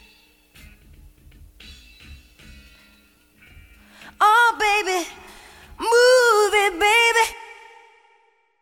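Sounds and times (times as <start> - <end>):
a cappella singing: 4.2 - 8.3.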